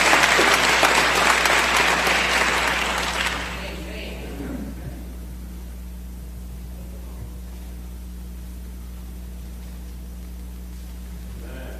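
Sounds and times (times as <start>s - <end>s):
audience applause for graduates: 0.0s - 3.8s.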